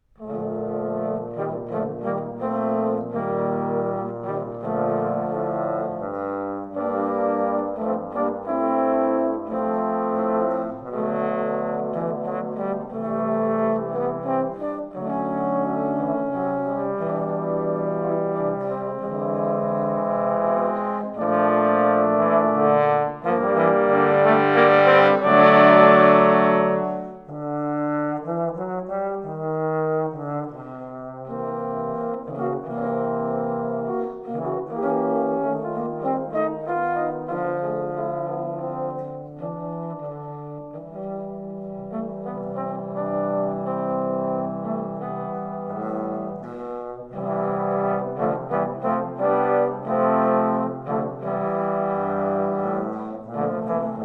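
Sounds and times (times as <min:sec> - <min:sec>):
trombone quartet playing a prelude: 0:00.1 - 0:54.0.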